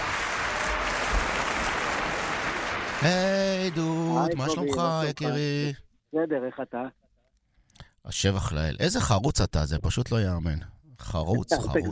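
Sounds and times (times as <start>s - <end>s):
applause: 0.0s - 4.8s
speech: 3.0s - 7.0s, 8.0s - 11.9s.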